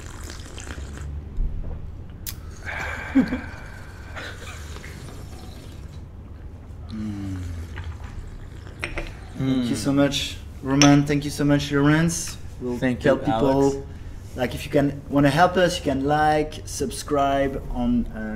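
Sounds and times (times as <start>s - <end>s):
person slurping tea into a microphone: 0.0s - 1.2s, 2.3s - 6.0s, 6.9s - 9.4s
speech: 3.1s - 3.6s, 9.4s - 18.3s.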